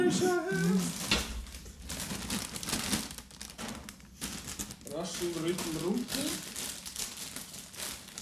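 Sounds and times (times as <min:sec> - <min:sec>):
voice humming: 0:00.0 - 0:01.0
speech: 0:00.1 - 0:01.0, 0:05.0 - 0:06.5
snack bag crinkling as it is opened: 0:00.4 - 0:08.1.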